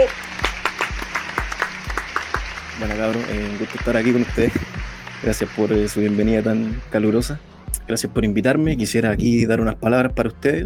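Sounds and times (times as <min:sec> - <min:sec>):
audience applause: 0:00.0 - 0:07.2
speech: 0:02.8 - 0:10.6
deep thumping beat: 0:03.8 - 0:10.6.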